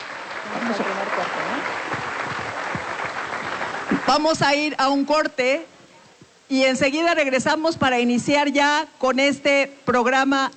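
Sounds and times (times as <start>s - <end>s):
audience applause: 0.0s - 4.5s
speech: 0.5s - 1.4s, 4.1s - 5.8s, 6.5s - 10.5s.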